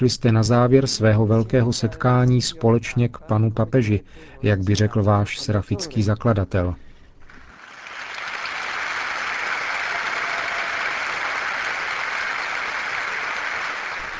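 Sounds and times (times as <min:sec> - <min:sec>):
speech: 0:00.0 - 0:06.8
long applause from audience: 0:07.4 - 0:14.1.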